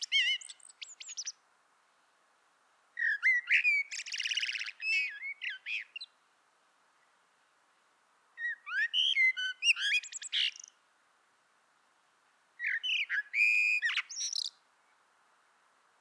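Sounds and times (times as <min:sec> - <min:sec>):
Common blackbird song: 0:00.0 - 0:01.4, 0:03.0 - 0:06.2, 0:08.4 - 0:10.8, 0:12.6 - 0:15.0.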